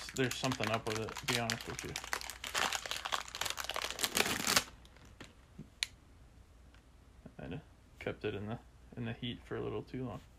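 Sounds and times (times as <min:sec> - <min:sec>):
protein bar wrapper crinkling: 0:00.0 - 0:05.4
speech: 0:00.2 - 0:02.2, 0:08.1 - 0:10.3.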